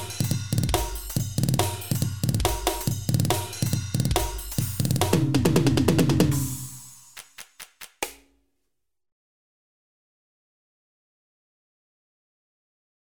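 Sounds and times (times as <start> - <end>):
jungle drum beat: 0.0 - 8.3.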